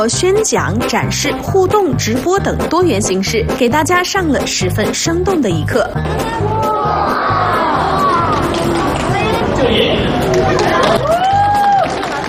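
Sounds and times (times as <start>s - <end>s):
speech: 0.0s - 7.6s
crowd cheering and whooping at outdoor event: 6.0s - 12.2s.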